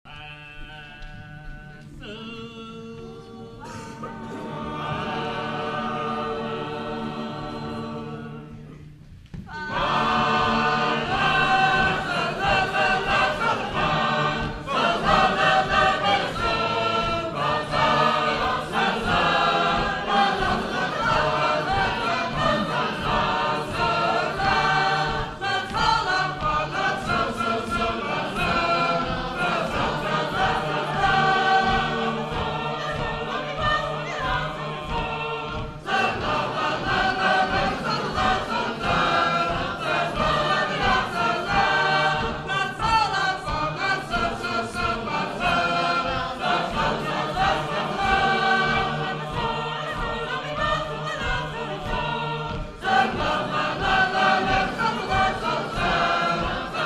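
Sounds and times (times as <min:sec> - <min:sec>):
Sacred Harp shape-note choir singing: 0:00.1 - 0:56.8.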